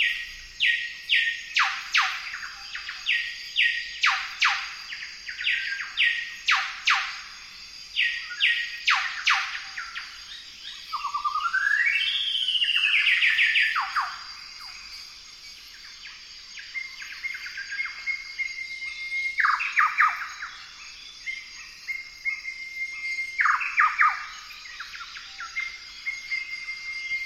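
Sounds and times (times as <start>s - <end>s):
golden whistler bird singing: 0.0s - 27.2s.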